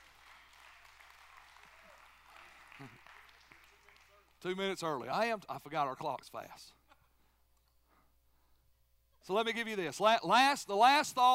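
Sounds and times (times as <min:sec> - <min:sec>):
audience applause: 0:00.0 - 0:04.4
speech: 0:02.8 - 0:03.1, 0:04.4 - 0:06.8, 0:09.2 - 0:11.3.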